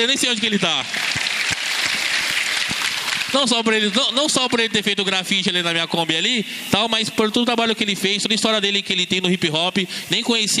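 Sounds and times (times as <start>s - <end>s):
speech: 0.0s - 1.2s, 3.3s - 10.5s
audience applause at a hip hop talk: 0.8s - 4.7s.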